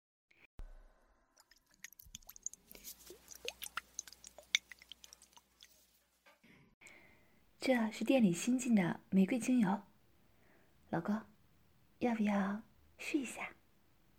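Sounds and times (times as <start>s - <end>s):
ear massage wet squishy rubbing: 1.4s - 6.0s
speech: 7.6s - 9.9s, 10.9s - 11.3s, 12.0s - 13.6s.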